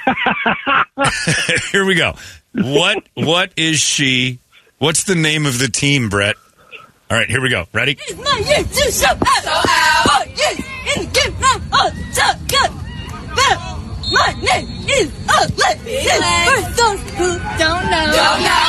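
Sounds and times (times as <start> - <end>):
laughter: 0.0 - 1.8
speech: 0.1 - 6.4, 7.1 - 11.1, 13.5 - 18.6
crowd chanting a cheer: 8.1 - 14.6, 15.3 - 18.6.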